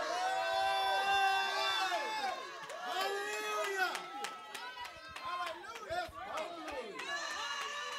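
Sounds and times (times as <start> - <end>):
audience yelling and cheering: 0.0 - 7.9
scattered clapping: 2.3 - 7.9.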